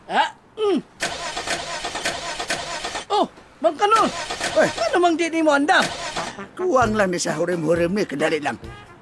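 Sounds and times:
car engine starting: 0:01.0 - 0:03.1, 0:04.0 - 0:05.0, 0:05.8 - 0:06.4
speech: 0:05.1 - 0:08.8.

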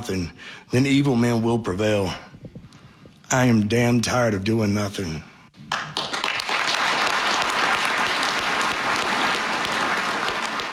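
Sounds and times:
speech: 0:00.0 - 0:02.3, 0:03.3 - 0:05.3
audience applause: 0:05.7 - 0:10.7.

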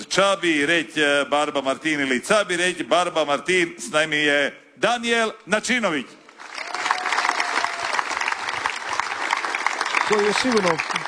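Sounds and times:
speech: 0:00.2 - 0:06.2, 0:10.1 - 0:11.0
audience applause greeting a singer on stage: 0:06.3 - 0:11.0.

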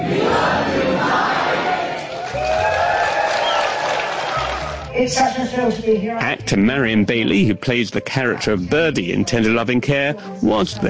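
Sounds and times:
Telluride film festival audience cheering: 0:00.0 - 0:04.9
clapping: 0:02.0 - 0:04.9
speech: 0:05.0 - 0:10.8.

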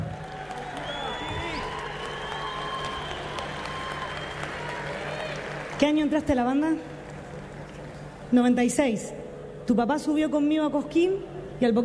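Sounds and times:
audience applause: 0:00.0 - 0:08.0
speech: 0:05.8 - 0:06.9, 0:08.3 - 0:11.8.

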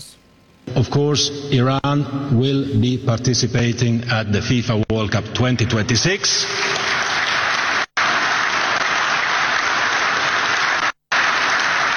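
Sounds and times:
speech: 0:00.7 - 0:06.8
audience applause: 0:06.7 - 0:11.9.

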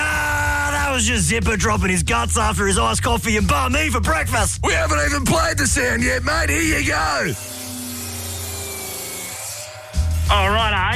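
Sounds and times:
speech: 0:01.0 - 0:07.5, 0:10.3 - 0:10.9
184mm circular saw cutting through PVC pipe: 0:04.9 - 0:10.9.

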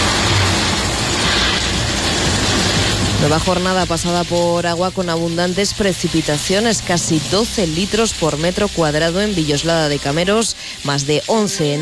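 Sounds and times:
thunder from storms in La Rioja: 0:00.0 - 0:04.3
speech: 0:03.2 - 0:11.7.

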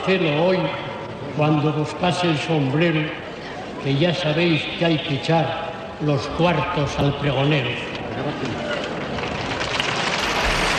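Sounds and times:
speech: 0:00.0 - 0:03.2, 0:03.8 - 0:08.6
audience applause at the pregón de San Mateo in 1983: 0:08.4 - 0:10.7.

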